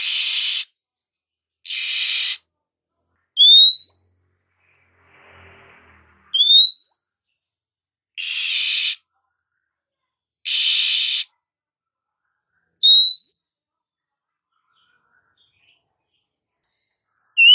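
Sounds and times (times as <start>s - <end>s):
female Oriental magpie-robin calling with rising whistled slurs: 0.0s - 0.7s, 1.7s - 2.4s, 3.4s - 4.1s, 6.4s - 7.4s, 8.2s - 9.0s, 10.5s - 11.3s, 12.8s - 13.5s, 16.9s - 17.5s.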